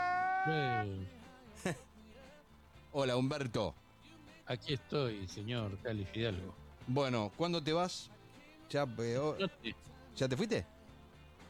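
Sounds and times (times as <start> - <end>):
recording of crying played on the radio: 0.0 - 0.9
speech: 0.4 - 1.9, 2.9 - 3.8, 4.5 - 10.7.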